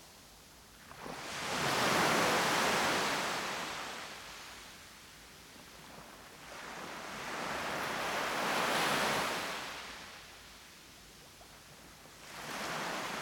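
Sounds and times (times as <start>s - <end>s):
waves on a beach: 0.8s - 4.8s, 5.6s - 10.9s, 12.1s - 13.2s.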